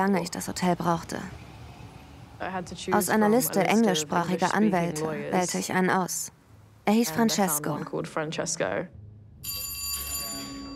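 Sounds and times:
speech: 0:00.0 - 0:01.4, 0:02.4 - 0:09.0
doorbell ringing: 0:09.4 - 0:10.7.

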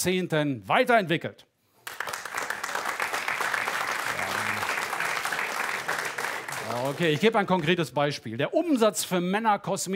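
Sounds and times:
speech: 0:00.0 - 0:01.5, 0:06.7 - 0:09.9
audience applause: 0:01.8 - 0:07.8.

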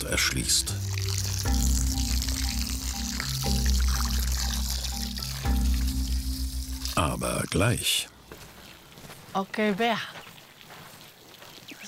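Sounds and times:
speech: 0:00.0 - 0:01.6, 0:07.0 - 0:08.1, 0:09.3 - 0:10.2
low droning pipe hum: 0:00.0 - 0:07.5
tap water running: 0:00.0 - 0:07.8.

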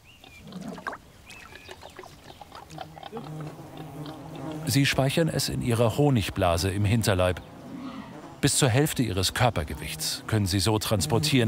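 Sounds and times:
bird chirps and whistles: 0:00.0 - 0:03.0
wild boar grunting at a muddy wallow: 0:00.3 - 0:01.0, 0:01.6 - 0:04.7, 0:07.6 - 0:08.2
speech: 0:04.7 - 0:07.5, 0:08.4 - 0:11.4.

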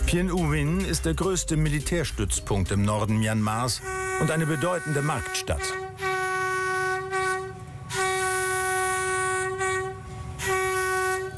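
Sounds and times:
moving train rumbling: 0:00.0 - 0:11.3
speech: 0:00.1 - 0:06.0
train horn blaring: 0:03.8 - 0:11.3.

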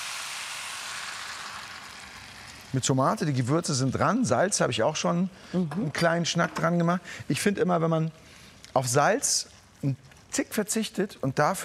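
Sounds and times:
hot pan sizzling while being deglazed: 0:00.0 - 0:04.7
speech: 0:02.7 - 0:11.6.

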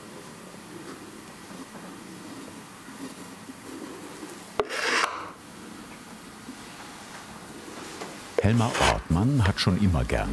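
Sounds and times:
quiet hiss: 0:00.0 - 0:10.3
knife scraping along a casting seam: 0:04.6 - 0:05.3
speech: 0:08.4 - 0:10.3.

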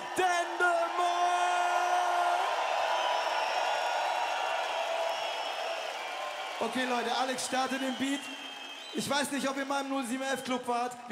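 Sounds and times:
crowd cheering and applauding: 0:00.0 - 0:11.1
scattered whoops: 0:01.0 - 0:09.2
speech: 0:06.7 - 0:11.1.

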